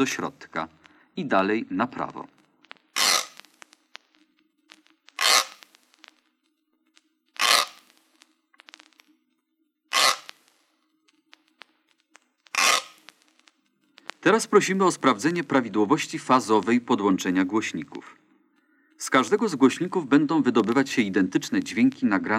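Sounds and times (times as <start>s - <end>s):
speech: 0.0s - 2.4s, 14.3s - 18.2s, 19.0s - 22.3s
kitchen grater scraping in a stereo test: 3.0s - 3.4s, 5.2s - 5.6s, 10.0s - 10.3s, 12.6s - 13.0s.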